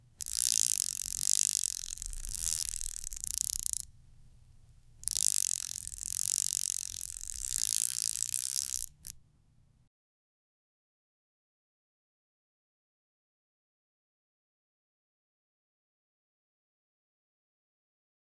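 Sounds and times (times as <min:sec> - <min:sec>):
string instrument with a rotating string: 0:00.0 - 0:03.9, 0:05.0 - 0:09.2.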